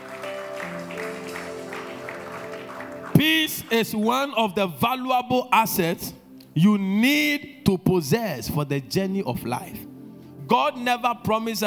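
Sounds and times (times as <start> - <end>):
audience clapping: 0.0 - 4.2
speech: 3.7 - 9.9, 10.5 - 11.6.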